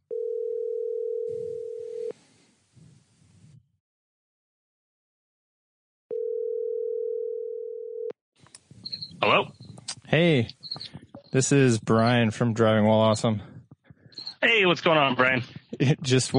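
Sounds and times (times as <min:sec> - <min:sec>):
telephone ringing tone: 0:00.1 - 0:02.1, 0:06.1 - 0:08.2
speech: 0:09.2 - 0:13.5, 0:14.5 - 0:16.3.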